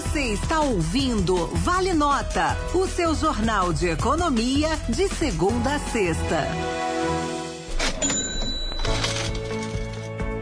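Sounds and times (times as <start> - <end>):
speech: 0.1 - 6.9
coins clinking: 7.7 - 10.2.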